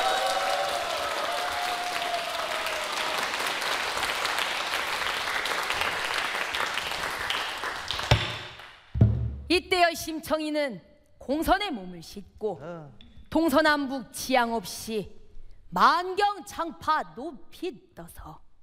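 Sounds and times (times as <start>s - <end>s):
audience applause: 0.0s - 8.7s
speech: 10.1s - 18.4s.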